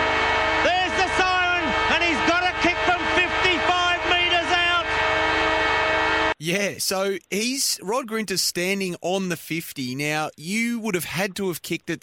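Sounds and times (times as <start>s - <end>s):
stadium siren ending the match: 0.0s - 6.4s
speech: 6.4s - 12.0s.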